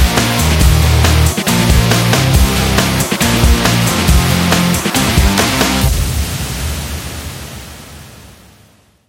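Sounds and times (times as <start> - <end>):
rock music: 0.0 - 5.9.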